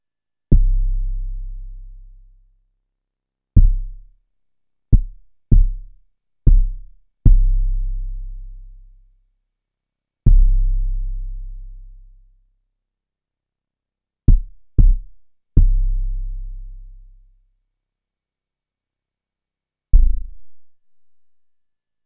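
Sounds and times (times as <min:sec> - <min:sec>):
kick drum: 0:00.5 - 0:01.2, 0:03.6 - 0:04.1, 0:04.9 - 0:08.0, 0:10.3 - 0:11.0, 0:14.3 - 0:16.3, 0:20.0 - 0:20.8.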